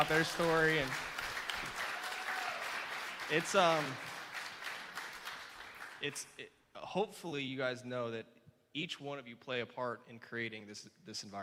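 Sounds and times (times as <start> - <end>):
speech: 0.0 - 1.1, 3.3 - 4.1, 6.0 - 11.4
audience round of applause: 0.0 - 6.0.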